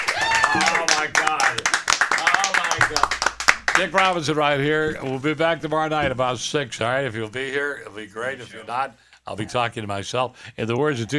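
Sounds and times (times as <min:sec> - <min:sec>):
people applauding: 0:00.0 - 0:04.2
speech: 0:03.8 - 0:11.1.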